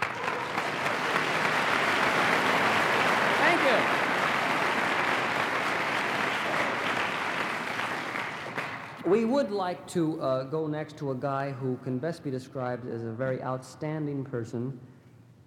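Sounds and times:
audience applause: 0.0 - 9.0
speech: 9.1 - 14.9.

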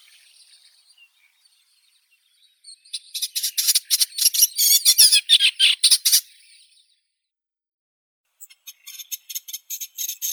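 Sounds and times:
olivaceous warbler Hippolais pallida: 0.0 - 6.8.

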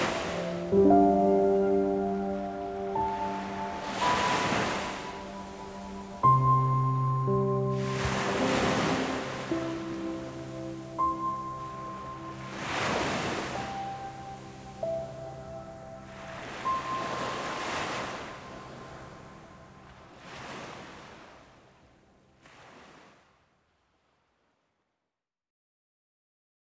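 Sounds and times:
healing piano: 0.0 - 20.5
ocean waves: 0.0 - 23.4.

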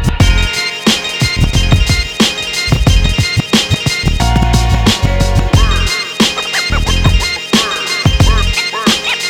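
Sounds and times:
DJ scratching instrumental: 0.2 - 9.2.

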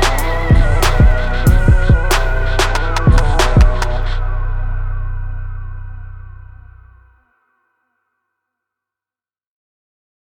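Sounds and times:
instrumental music: 0.0 - 7.0.

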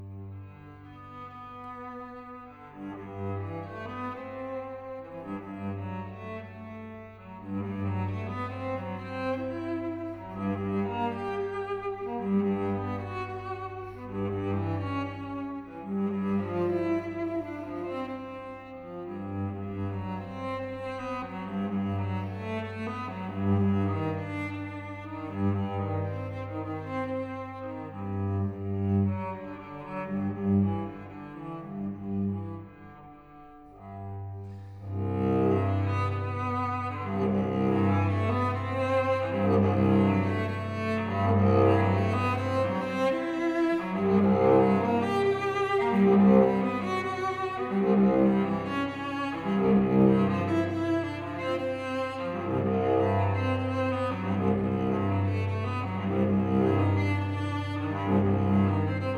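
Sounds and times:
slow solo cello barcarolle: 0.0 - 59.1.

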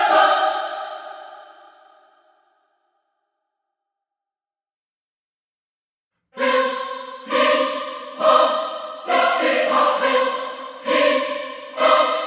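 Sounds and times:
choir stem: 0.0 - 2.2, 6.4 - 12.2.

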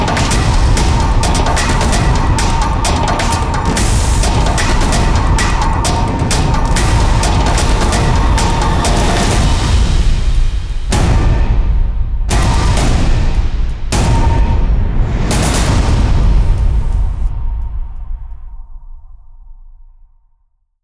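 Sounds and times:
drum effects: 0.0 - 19.0.

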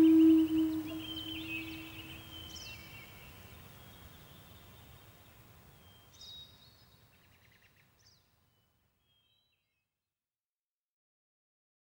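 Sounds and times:
Native American flute playing: 0.0 - 2.1.

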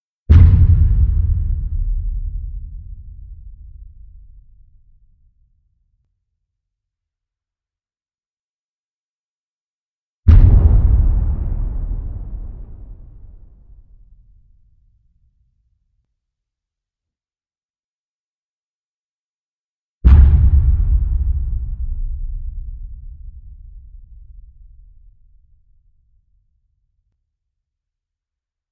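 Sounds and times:
dark sub booms: 0.3 - 3.2, 10.3 - 14.4, 20.1 - 25.2.

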